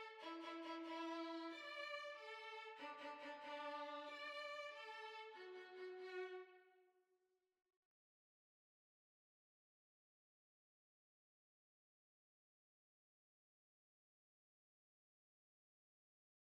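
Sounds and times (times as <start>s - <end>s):
violin playing a quadrille: 0.0s - 6.5s.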